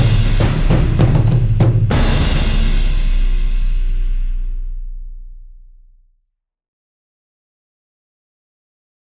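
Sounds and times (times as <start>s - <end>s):
cinematic trailer music: 0.0s - 5.7s.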